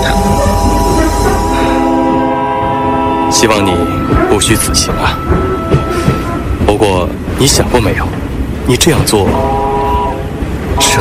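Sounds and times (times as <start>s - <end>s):
horn-like tonal drone: 0.0s - 6.6s, 9.3s - 10.9s
passenger train slowly pulling away: 0.0s - 10.9s
speech: 3.4s - 5.4s, 6.8s - 9.5s.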